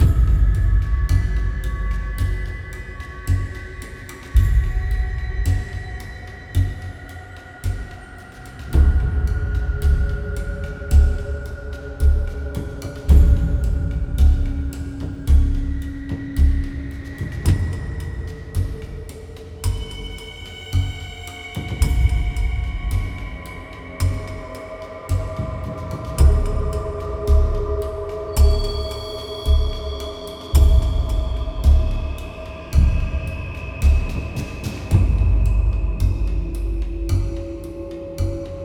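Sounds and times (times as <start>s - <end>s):
music: 0.0s - 38.6s.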